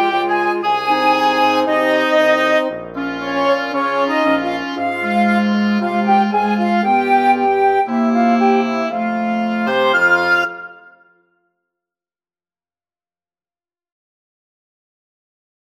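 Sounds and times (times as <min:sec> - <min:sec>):
wind quintet: 0:00.0 - 0:11.2.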